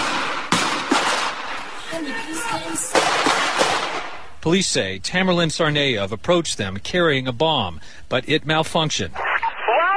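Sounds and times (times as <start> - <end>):
gunshots during police shootout: 0.0 - 1.7, 2.8 - 4.3
raised voices: 1.7 - 3.0
speech: 2.0 - 3.4, 4.4 - 9.2.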